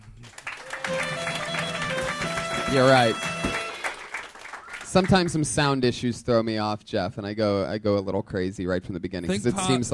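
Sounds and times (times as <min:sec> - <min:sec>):
audience applause for the band: 0:00.0 - 0:05.5
speech: 0:02.7 - 0:03.6, 0:04.9 - 0:09.9.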